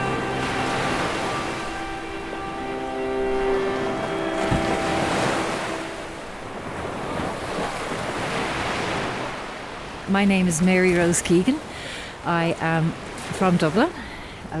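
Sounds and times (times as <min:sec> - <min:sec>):
faint sustained tonal hum: 0:00.0 - 0:08.4
ocean surf washing and breaking: 0:00.0 - 0:14.5
speech: 0:10.1 - 0:14.5.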